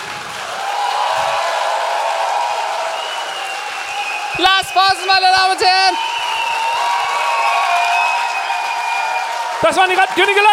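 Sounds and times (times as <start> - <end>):
applause: 0.0 - 10.5
speech: 4.4 - 6.1, 9.6 - 10.5.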